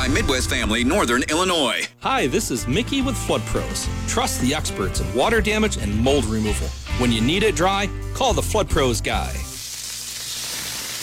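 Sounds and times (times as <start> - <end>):
speech: 0.1 - 9.5
smash burgers sizzling on a hot surface: 4.6 - 11.0.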